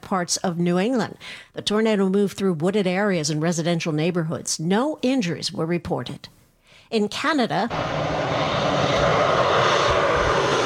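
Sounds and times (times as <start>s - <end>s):
speech: 0.1s - 8.5s
firefighting airplanes droning while dropping water on wildfires in Canada's Northwest Territories: 7.7s - 10.6s.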